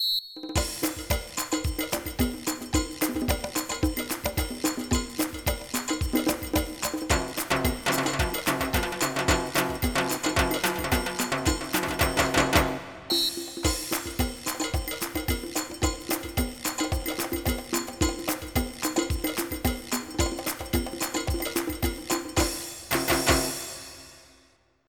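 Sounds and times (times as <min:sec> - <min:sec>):
drums and percussion: 0:00.4 - 0:24.4.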